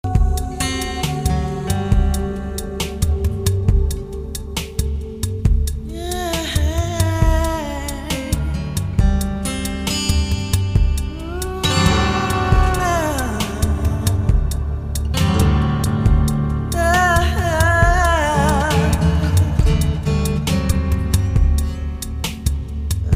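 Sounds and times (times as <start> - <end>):
ambient guitar: 0.0 - 23.1.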